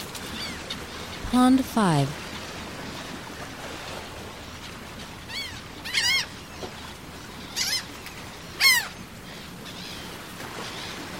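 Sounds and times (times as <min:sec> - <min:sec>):
speech: 0:01.3 - 0:02.2
gull calling: 0:05.3 - 0:06.4, 0:08.5 - 0:11.1.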